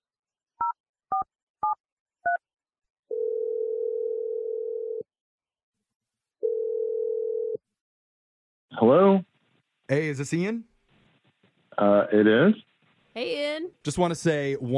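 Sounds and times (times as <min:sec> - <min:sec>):
long steady telephone ringing tones on the caller's end: 0:03.1 - 0:05.0, 0:06.4 - 0:07.6
speech: 0:08.8 - 0:09.3, 0:09.9 - 0:10.7, 0:11.8 - 0:14.7.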